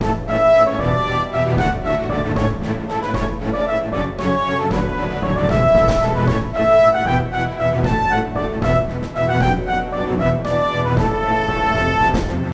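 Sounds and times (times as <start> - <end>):
music intro: 0.0 - 12.5.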